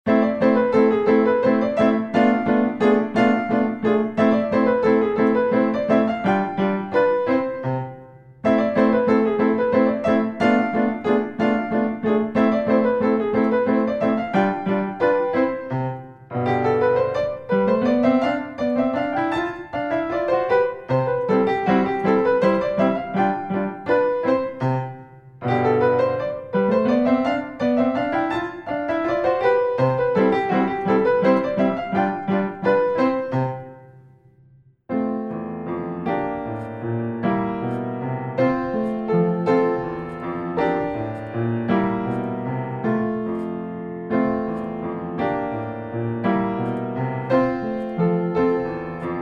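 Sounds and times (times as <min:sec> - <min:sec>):
piano scherzo: 0:00.0 - 0:49.1.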